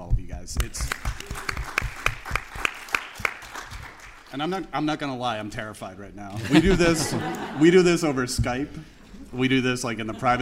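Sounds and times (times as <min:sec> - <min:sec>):
speech: 0:00.5 - 0:01.0, 0:04.3 - 0:10.4
audience applause at CrimeCon: 0:00.9 - 0:04.4
laughter: 0:06.3 - 0:10.4.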